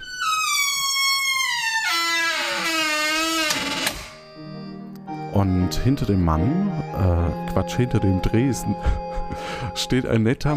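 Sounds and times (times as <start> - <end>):
squeaking door: 0.0 - 4.4
speech: 5.4 - 10.5
laughter: 8.1 - 9.9.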